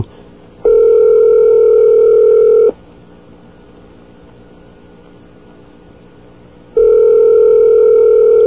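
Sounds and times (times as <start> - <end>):
telephone ringing: 0.6 - 2.7, 6.8 - 8.4.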